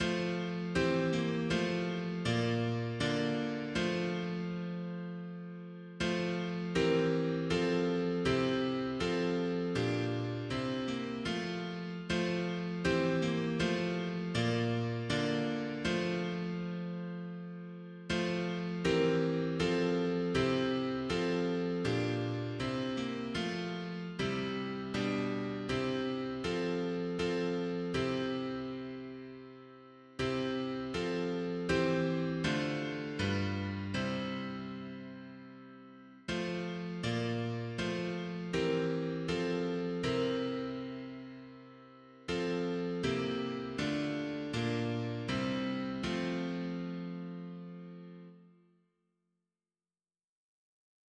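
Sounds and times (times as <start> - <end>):
mono piano playing hymns: 0.0 - 48.0.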